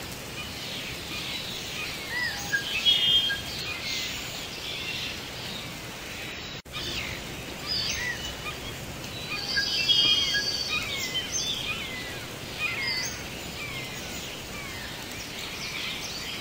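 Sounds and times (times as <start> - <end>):
tropical rainforest rain: 0.0 - 16.4.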